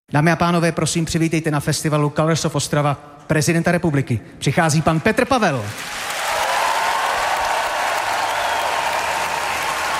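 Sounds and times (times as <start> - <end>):
speech: 0.1 - 6.1
large audience applause and standing ovation: 5.7 - 9.9.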